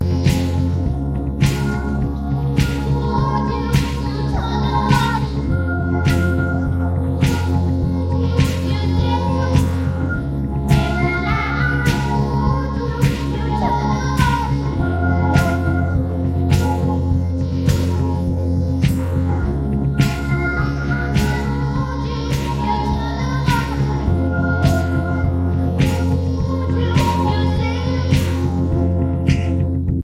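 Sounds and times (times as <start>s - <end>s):
instrumental music: 0.0s - 30.0s.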